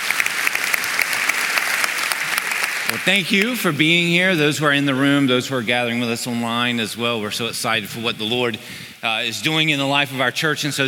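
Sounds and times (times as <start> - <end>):
audience applauding: 0.0 - 3.9
speech: 2.9 - 10.8.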